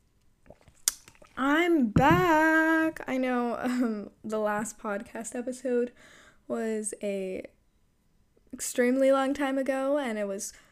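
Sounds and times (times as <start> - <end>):
lip smack: 0.5 - 1.4
person sipping water: 0.5 - 1.4
speech: 1.4 - 7.6, 8.6 - 10.6.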